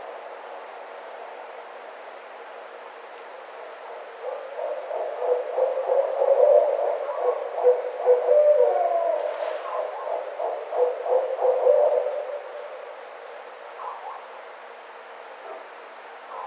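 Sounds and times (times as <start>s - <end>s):
Barred Owl calling: 4.2s - 13.0s, 13.8s - 14.3s.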